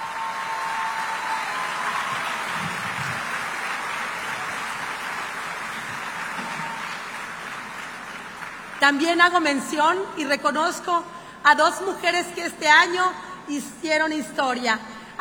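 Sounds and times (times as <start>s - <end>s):
audience applause: 0.0s - 8.8s
speech: 8.8s - 15.2s.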